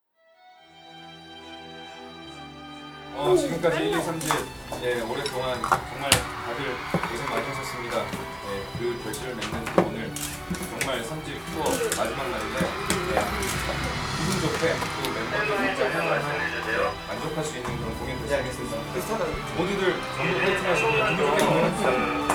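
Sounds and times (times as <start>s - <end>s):
live acoustic music: 1.6s - 22.3s
laughter: 3.1s - 22.3s.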